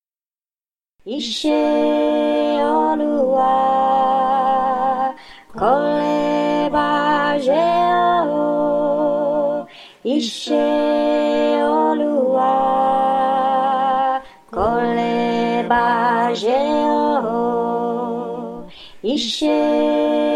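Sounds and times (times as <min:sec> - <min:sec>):
alto voice singing: 0:01.0 - 0:20.3.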